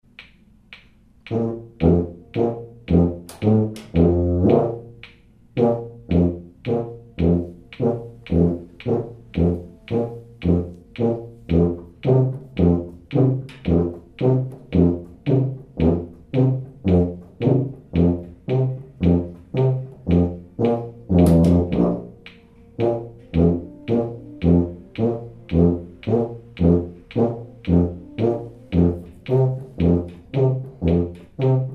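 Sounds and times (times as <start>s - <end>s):
tuba: 1.2s - 31.7s.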